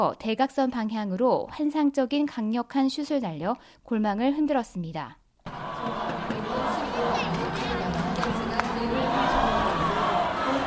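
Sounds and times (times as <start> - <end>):
speech: 0.0 - 6.1
large indoor crowd cheering: 5.4 - 10.6.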